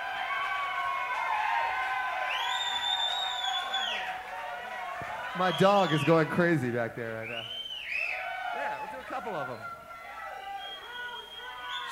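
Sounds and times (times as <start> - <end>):
audience whistling loudly: 0.0 - 4.2, 5.2 - 6.4, 7.2 - 11.9
steady crowd roar: 0.0 - 11.9
speech: 5.4 - 7.6, 8.7 - 9.8.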